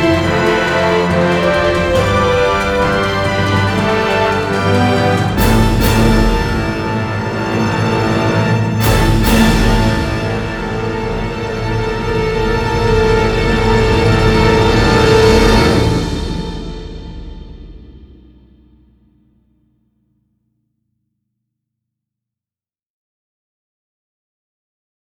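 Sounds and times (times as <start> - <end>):
background music: 0.0 - 18.0.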